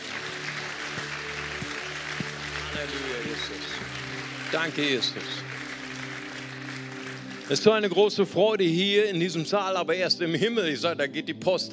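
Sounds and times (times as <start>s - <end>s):
crowd applause: 0.0s - 8.2s
speech: 2.8s - 5.5s, 7.5s - 11.7s.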